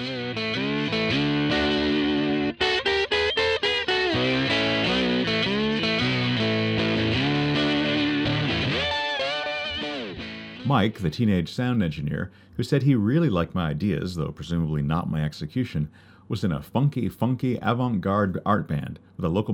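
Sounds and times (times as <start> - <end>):
blistering distorted slide guitar solo on a hymn: 0.0 - 10.7
speech: 10.7 - 19.5.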